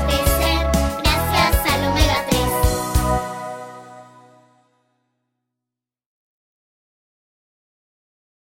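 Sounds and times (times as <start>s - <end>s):
karaoke singing: 0.0s - 3.4s.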